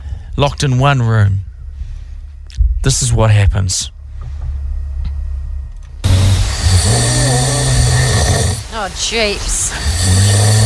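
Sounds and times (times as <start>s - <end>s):
low hum: 0.0s - 10.6s
speech: 0.4s - 1.4s, 2.8s - 4.0s, 8.8s - 10.5s
sleeping man snoring deeply: 6.0s - 8.8s, 9.5s - 10.6s.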